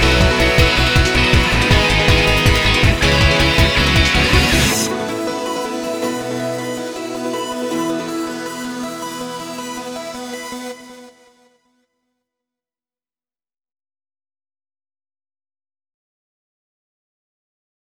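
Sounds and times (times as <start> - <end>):
instrumental music: 0.0 - 11.4.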